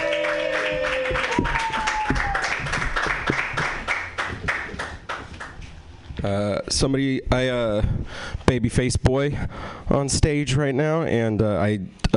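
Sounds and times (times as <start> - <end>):
cheering: 0.0 - 2.8
audience applause for a comedian at a comedy show: 0.0 - 5.6
speech: 6.3 - 12.1.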